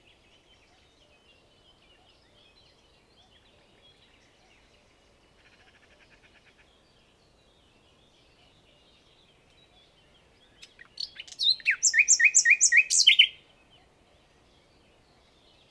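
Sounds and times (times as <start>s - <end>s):
Common nightingale Luscinia megarhynchos song: 0.0s - 15.6s.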